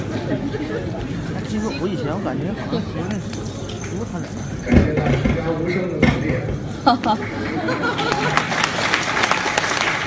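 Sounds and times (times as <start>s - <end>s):
laughter: 0.0s - 1.4s, 6.8s - 8.9s
speech: 1.5s - 8.5s
audience applause: 7.2s - 10.0s.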